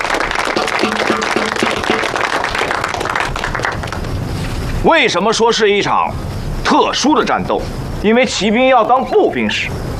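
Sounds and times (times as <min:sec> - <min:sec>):
group applause: 0:00.0 - 0:04.2
speech: 0:04.8 - 0:09.9.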